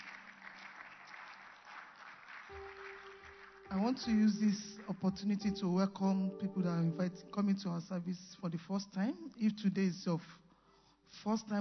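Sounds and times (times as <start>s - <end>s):
church congregation clapping during a worship service: 0.0s - 7.4s
held musical tone: 2.5s - 8.7s
speech: 3.7s - 10.4s, 11.1s - 11.5s.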